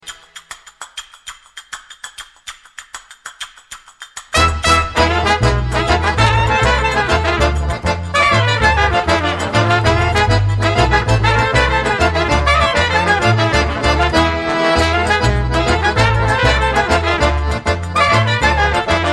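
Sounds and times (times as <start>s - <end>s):
cocek klezmer music: 4.2s - 19.1s.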